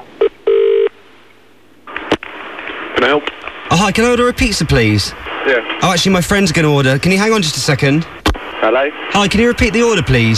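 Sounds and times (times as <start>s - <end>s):
telephone tones while calling a pizza place: 0.0s - 0.9s
speech: 3.1s - 10.3s.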